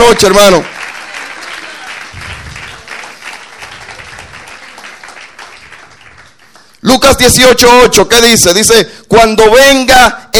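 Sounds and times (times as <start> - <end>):
speech: 0.0 - 0.8, 6.9 - 10.3
congregation applauding during a church service: 0.0 - 7.6.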